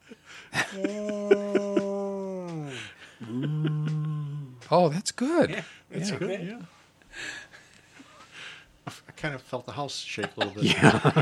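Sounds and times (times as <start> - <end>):
laughter: 0.5 - 4.4, 10.2 - 11.2
speech: 0.6 - 1.5, 4.7 - 7.3, 9.2 - 11.2
voice imitating a whale call: 0.6 - 4.7.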